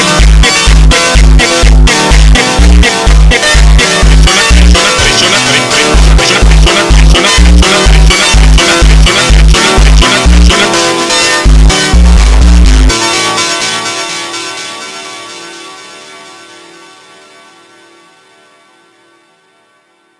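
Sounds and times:
slowed funk music: 0.0 - 14.2.

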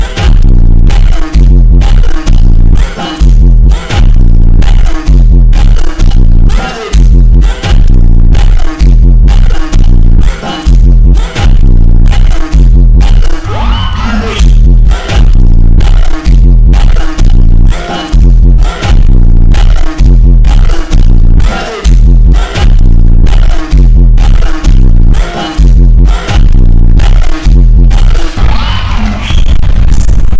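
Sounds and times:
slow montagem funk music with superbass and reverb: 0.0 - 30.3.

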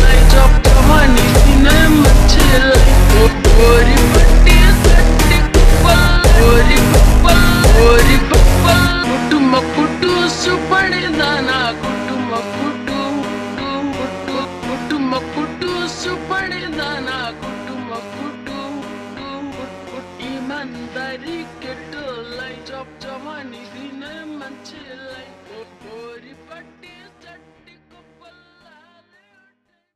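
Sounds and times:
slowed funk music: 0.0 - 21.3.

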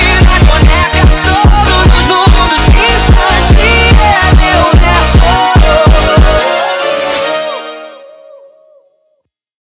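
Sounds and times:
sped up beat: 0.0 - 6.4.

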